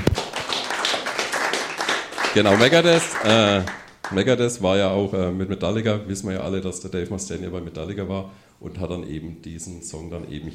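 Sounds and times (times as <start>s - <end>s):
hand clapping: 0.0s - 4.2s
speech: 2.3s - 10.5s.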